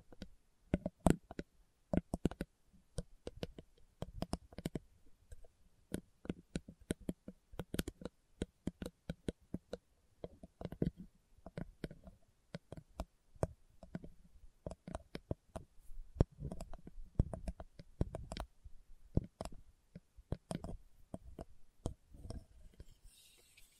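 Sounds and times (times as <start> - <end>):
slow tapping: 0.0 - 23.7.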